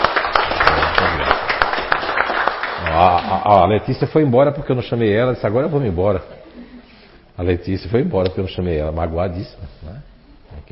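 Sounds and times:
crowd round of applause: 0.0s - 3.6s
speech: 3.0s - 6.4s, 7.4s - 9.9s.

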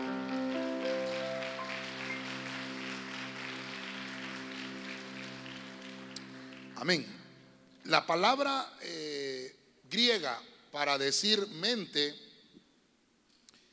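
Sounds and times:
church audience clapping: 0.0s - 7.2s
speech: 6.8s - 7.2s, 7.9s - 9.2s, 9.9s - 12.2s.

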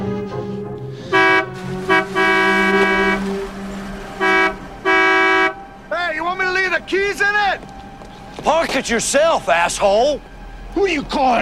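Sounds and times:
convertible car engine rumble: 0.7s - 11.4s
convertible car horn honking: 1.1s - 6.3s
speech: 8.7s - 11.4s.

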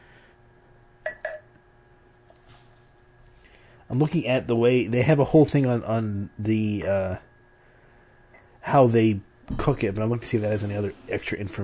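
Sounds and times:
glassy clinks of mixing glass: 1.0s - 1.5s
speech: 3.9s - 7.3s, 8.7s - 11.6s.

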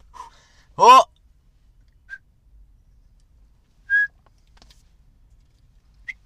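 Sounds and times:
speech: 0.8s - 1.1s
high whistled chirps of a burp through a whistling silencer: 3.9s - 4.2s.

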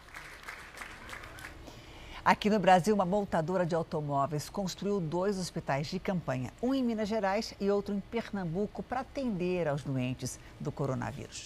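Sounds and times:
applause for family leaving hospital: 0.0s - 1.6s
speech: 2.3s - 11.4s.

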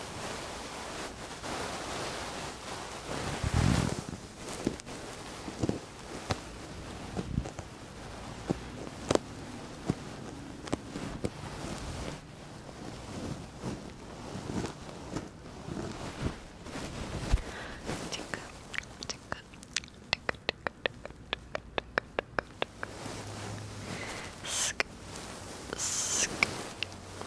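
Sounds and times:
fluffy ear muffs rubbing and scratching against the mic: 0.1s - 27.2s
sharp scratches and clicks: 18.2s - 23.1s, 25.7s - 27.0s.

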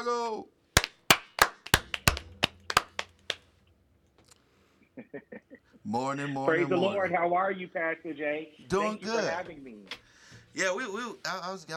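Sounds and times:
speech: 0.0s - 0.6s, 5.0s - 10.0s, 10.6s - 11.7s
clapping: 0.8s - 3.5s.

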